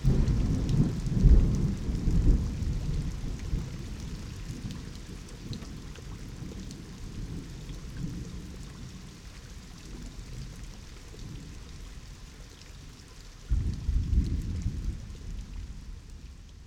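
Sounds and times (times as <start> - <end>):
thunder: 0.0 - 4.6, 13.5 - 16.6.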